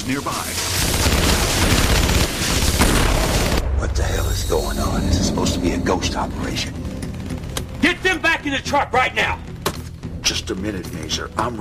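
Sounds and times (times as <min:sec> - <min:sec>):
speech: 0:00.1 - 0:01.4, 0:03.8 - 0:06.9, 0:07.8 - 0:09.4, 0:10.3 - 0:11.5
machine gun fire from soldiers along a grassy roadside in an action film: 0:00.6 - 0:03.6.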